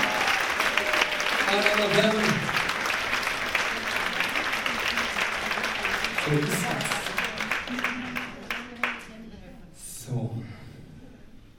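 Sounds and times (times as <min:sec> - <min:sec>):
audience applause: 0:00.0 - 0:09.0
speech: 0:01.5 - 0:02.6, 0:06.3 - 0:06.9.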